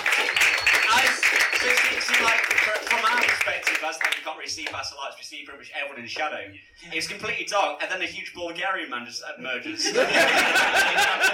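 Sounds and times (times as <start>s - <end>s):
audience applause: 0.0s - 4.2s
speech: 3.8s - 11.3s
laughter: 9.7s - 11.3s.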